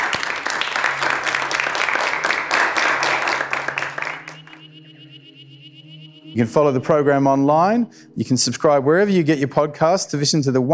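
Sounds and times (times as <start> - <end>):
audience applause: 0.0 - 4.6
speech: 6.4 - 10.7.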